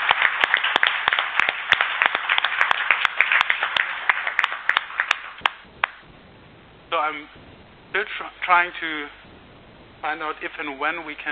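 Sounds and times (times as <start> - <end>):
group applause: 0.0 - 6.0
speech: 7.0 - 9.3, 10.0 - 11.3.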